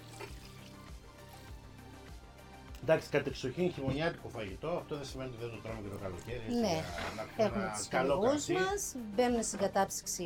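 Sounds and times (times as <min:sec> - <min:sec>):
wine poured into a pot of simmering wild game stew: 0:00.0 - 0:01.7
speech: 0:02.8 - 0:10.2.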